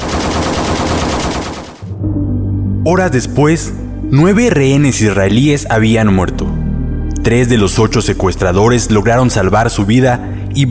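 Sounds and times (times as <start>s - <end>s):
AK-47 automatic rifle burst: 0.0s - 1.8s
speech: 2.8s - 6.6s, 7.2s - 10.6s.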